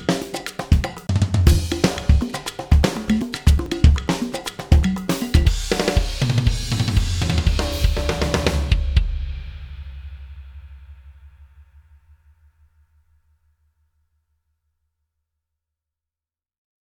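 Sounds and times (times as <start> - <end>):
backing track: 0.0 - 9.0.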